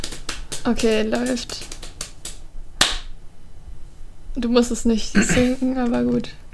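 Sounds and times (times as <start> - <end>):
hand claps: 0.0 - 3.1
speech: 0.6 - 1.7, 4.4 - 6.4.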